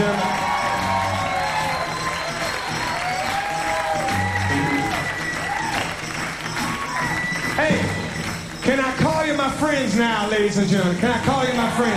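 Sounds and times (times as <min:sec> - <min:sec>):
cheers and whoops: 0:00.0 - 0:07.6
large crowd applauding for the band: 0:00.0 - 0:11.9
speech: 0:09.6 - 0:11.9.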